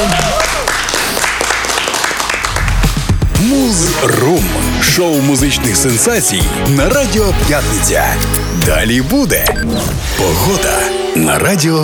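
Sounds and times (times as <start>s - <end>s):
applause: 0.0s - 3.3s
speech: 4.3s - 11.8s.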